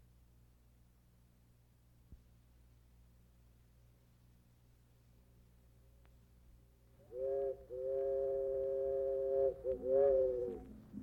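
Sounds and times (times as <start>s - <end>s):
steam locomotive whistle: 7.0s - 10.7s.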